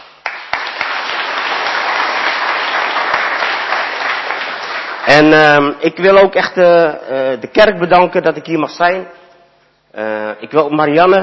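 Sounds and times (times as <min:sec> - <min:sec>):
audience applause: 0:00.0 - 0:05.3
speech: 0:05.1 - 0:09.2, 0:10.0 - 0:11.2.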